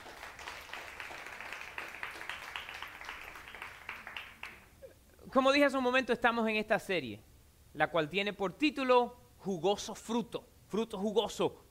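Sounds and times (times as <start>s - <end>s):
audience applause: 0.0s - 4.7s
speech: 5.3s - 11.6s.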